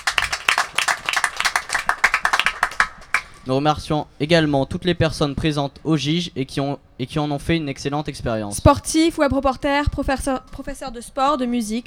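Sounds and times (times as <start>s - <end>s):
audience applause: 0.0s - 3.5s
speech: 3.4s - 11.8s.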